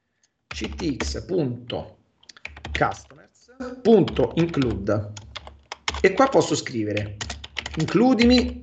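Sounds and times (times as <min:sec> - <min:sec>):
typing code on a computer keyboard: 0:00.5 - 0:03.2, 0:03.9 - 0:08.6
speech: 0:00.6 - 0:02.0, 0:02.8 - 0:05.2, 0:06.0 - 0:08.6.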